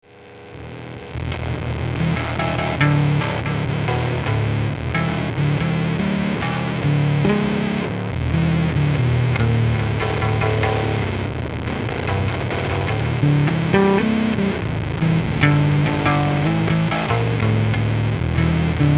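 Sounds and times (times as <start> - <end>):
bass: 0.0 - 18.9.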